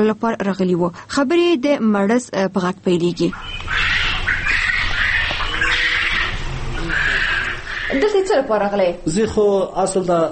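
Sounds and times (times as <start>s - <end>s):
speech: 0.0s - 3.9s, 7.9s - 10.3s
poultry squawking at a farm: 3.1s - 9.1s.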